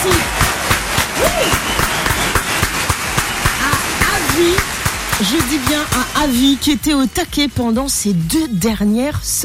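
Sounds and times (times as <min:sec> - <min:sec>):
audience applause: 0:00.0 - 0:07.0
vocal whoop: 0:01.2 - 0:01.6
speech: 0:05.3 - 0:09.4.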